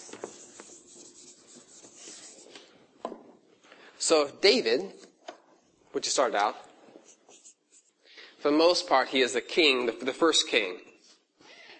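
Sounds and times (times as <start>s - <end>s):
small written mark being rubbed out: 0.0s - 2.7s, 7.0s - 8.0s
speech: 4.1s - 5.0s, 6.0s - 6.7s, 8.4s - 10.9s.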